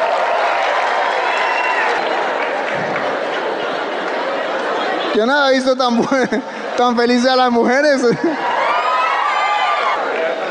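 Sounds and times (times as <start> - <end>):
audience applause: 0.0 - 6.3, 8.4 - 10.4
speech: 5.2 - 8.5
laughter: 5.7 - 8.8.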